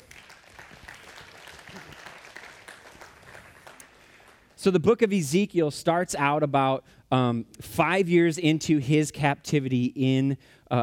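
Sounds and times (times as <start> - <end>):
round of applause: 0.0 - 4.6
speech: 4.6 - 10.8.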